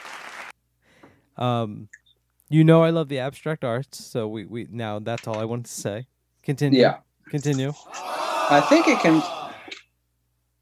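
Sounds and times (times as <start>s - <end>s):
crowd applause sound effect: 0.0s - 0.5s, 7.9s - 9.8s
speech: 1.4s - 9.4s
loud sustained voiced shout: 7.8s - 9.8s.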